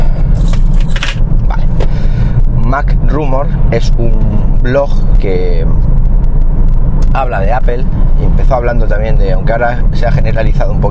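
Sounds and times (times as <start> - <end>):
low rumble: 0.0 - 10.8
keys jangling as they are put away: 0.4 - 1.2
speech: 2.8 - 6.0, 7.1 - 10.8.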